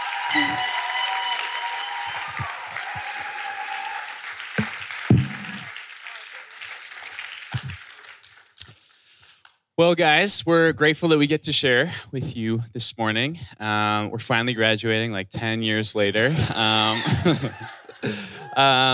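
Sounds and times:
audience applause for graduating students at a ceremony: 0.0 - 8.6
speech: 9.8 - 18.9
laughter: 16.3 - 18.9.

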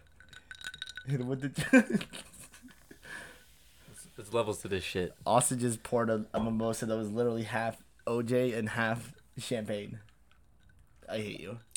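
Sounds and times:
ice clinking in a glass: 0.0 - 1.2
speech: 1.0 - 2.3, 4.2 - 10.1, 11.1 - 11.7.

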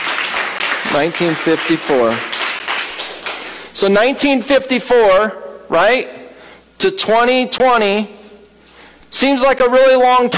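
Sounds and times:
audience applause: 0.0 - 3.7
speech: 0.9 - 2.3, 3.8 - 6.2, 6.8 - 8.2, 9.1 - 10.3.

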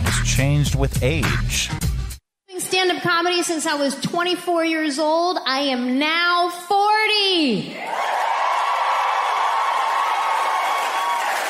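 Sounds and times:
speech: 0.2 - 1.9, 2.8 - 8.1
audience cheering: 7.8 - 11.4.

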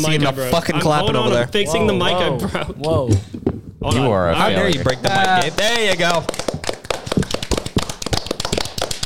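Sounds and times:
speech: 0.0 - 6.5
one person clapping hands: 4.6 - 9.0.

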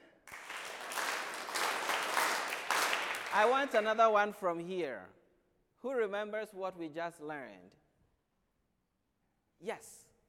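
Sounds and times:
applause: 0.2 - 4.0
speech: 3.4 - 5.2, 5.8 - 7.8, 9.6 - 10.1.

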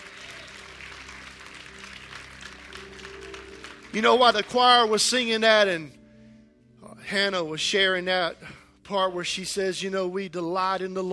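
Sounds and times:
audience clapping hands: 0.0 - 5.4
speech: 3.9 - 6.0, 7.1 - 11.1.

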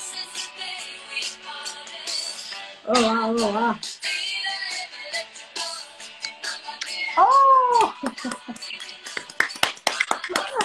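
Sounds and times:
speech: 2.8 - 4.1
applause, hands clapping: 7.7 - 10.6.

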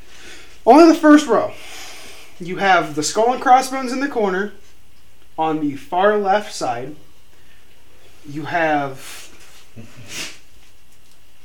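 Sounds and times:
speech: 0.7 - 1.6, 2.4 - 4.6, 5.4 - 7.0, 8.2 - 9.2, 9.8 - 10.4
dog sneezing: 9.9 - 10.5.

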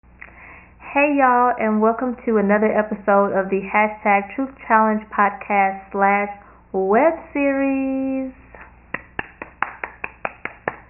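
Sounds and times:
speech: 0.9 - 8.4
hands clapping: 8.6 - 10.8.

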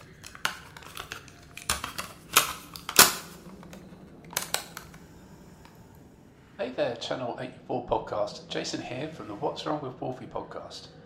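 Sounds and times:
cassette tape being flipped over: 0.0 - 5.0
faint handling noise: 0.0 - 6.1
speech: 6.6 - 11.0.

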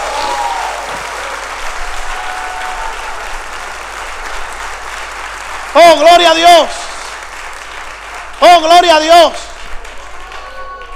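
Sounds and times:
large audience applauding: 0.0 - 10.9
speech: 5.8 - 6.8, 8.4 - 9.4.

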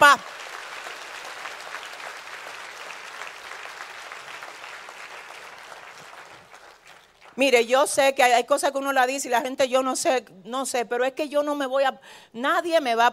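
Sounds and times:
audience applause: 0.0 - 7.4
speech: 7.4 - 13.1.

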